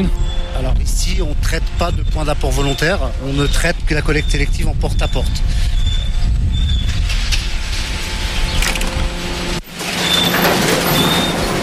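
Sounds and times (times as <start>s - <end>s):
speech: 0.0s - 5.9s
bag-opening machine in a recycling sorting plant: 7.1s - 11.6s.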